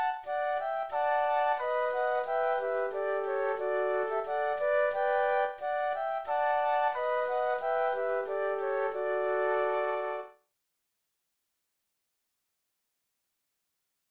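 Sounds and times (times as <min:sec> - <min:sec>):
flute trio playing: 0:00.0 - 0:10.4.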